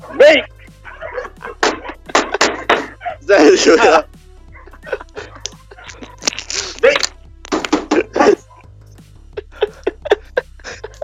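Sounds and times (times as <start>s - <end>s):
dogs fighting and barking: 0.0s - 3.2s, 4.5s - 8.8s
laughter: 0.0s - 11.0s
speech: 0.1s - 0.6s, 3.3s - 4.1s.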